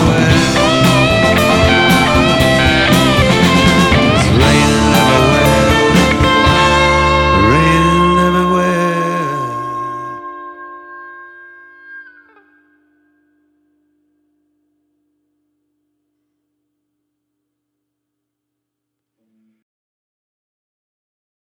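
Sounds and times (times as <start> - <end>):
live band playing: 0.0 - 12.6.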